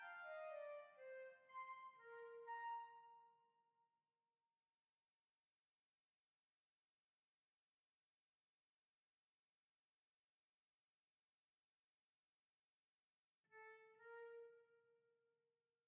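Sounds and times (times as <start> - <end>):
classical flute: 0.0 - 3.3.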